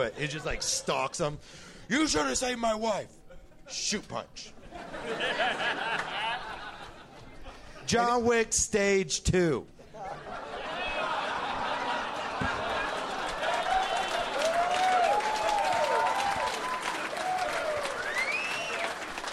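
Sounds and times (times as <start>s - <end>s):
speech: 0.0s - 6.2s, 7.9s - 9.8s
laughter: 0.1s - 1.2s, 3.2s - 3.8s, 4.6s - 7.9s, 9.8s - 14.4s
audience applause: 11.0s - 19.3s
scattered whoops and cheers: 13.4s - 19.1s.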